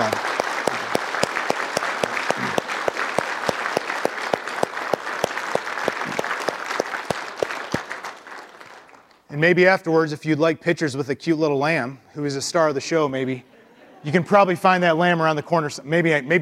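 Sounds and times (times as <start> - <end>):
audience applause: 0.0 - 9.2
speech: 9.4 - 16.4.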